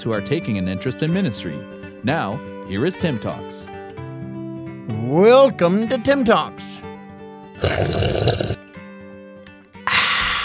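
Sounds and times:
speech: 0:00.0 - 0:03.8, 0:05.0 - 0:06.8, 0:07.6 - 0:08.6
slurping a drink: 0:07.6 - 0:08.6, 0:09.5 - 0:10.4.

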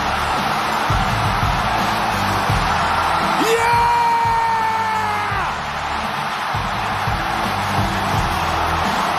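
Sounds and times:
wrestling crowd cheering loudly: 0:00.0 - 0:09.1
person whooping: 0:03.4 - 0:05.5.

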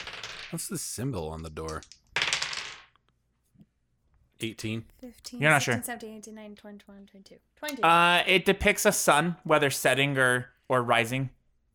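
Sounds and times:
dice rattling across a hard surface: 0:00.0 - 0:00.7, 0:01.5 - 0:03.1
speech: 0:00.5 - 0:02.0, 0:04.4 - 0:11.4.

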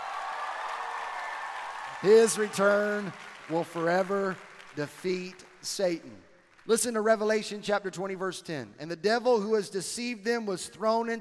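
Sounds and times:
audience clapping: 0:00.0 - 0:07.2
speech: 0:02.0 - 0:11.1.

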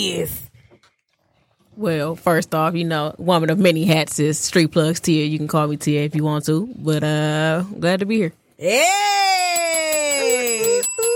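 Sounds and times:
speech: 0:00.0 - 0:00.4, 0:01.8 - 0:11.1
bell ringing: 0:09.5 - 0:11.1.

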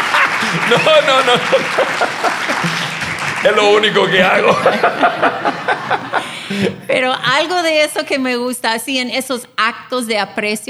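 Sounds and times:
audience applause: 0:00.0 - 0:06.9
laughter: 0:00.0 - 0:08.4
speech: 0:00.6 - 0:10.6.

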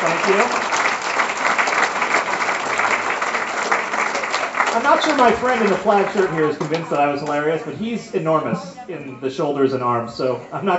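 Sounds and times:
audience applause: 0:00.0 - 0:07.8
speech: 0:00.2 - 0:00.7, 0:04.8 - 0:10.7.

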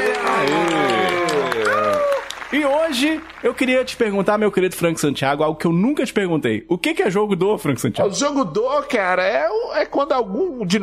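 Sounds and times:
applause: 0:00.0 - 0:04.3
speech: 0:02.6 - 0:10.8.

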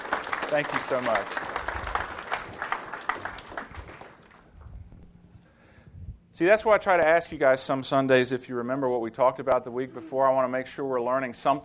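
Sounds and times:
round of applause: 0:00.0 - 0:04.6
speech: 0:00.5 - 0:01.5, 0:06.4 - 0:11.6.

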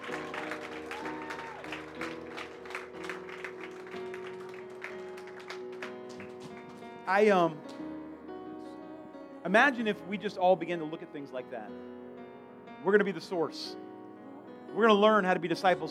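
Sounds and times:
audience clapping: 0:00.0 - 0:07.8
sustained organ or keyboard chords: 0:00.0 - 0:15.8
person whooping: 0:00.1 - 0:02.0
speech: 0:07.1 - 0:07.8, 0:09.5 - 0:12.0, 0:12.8 - 0:13.8, 0:14.7 - 0:15.8.

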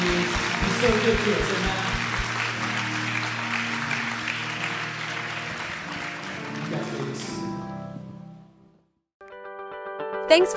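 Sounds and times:
audience clapping hands: 0:00.0 - 0:07.5
speech: 0:00.8 - 0:01.9, 0:10.3 - 0:10.5.

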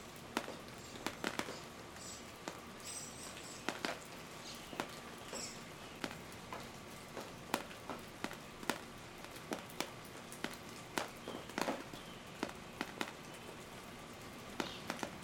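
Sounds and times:
rain dripping: 0:00.0 - 0:15.2
birds: 0:00.4 - 0:07.3, 0:11.0 - 0:13.8, 0:14.5 - 0:15.2.

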